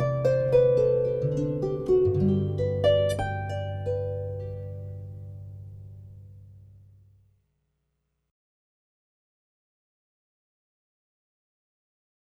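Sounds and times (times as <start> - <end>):
harp playing: 0.0 - 6.8.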